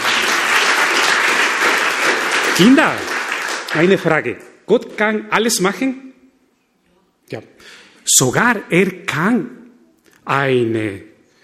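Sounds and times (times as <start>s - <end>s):
crowd clapping: 0.0s - 4.4s
speech: 2.6s - 3.1s, 3.7s - 6.1s, 7.3s - 9.6s, 10.3s - 11.1s.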